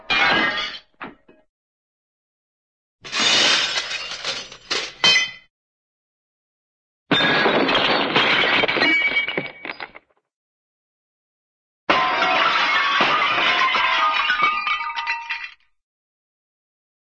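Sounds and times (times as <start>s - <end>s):
cartoon glass bottle dropping and crashing: 3.0s - 5.5s, 7.1s - 10.1s, 11.9s - 15.7s.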